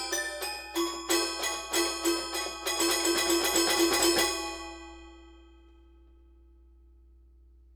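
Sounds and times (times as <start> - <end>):
toy piano plunk: 0.1 - 5.0.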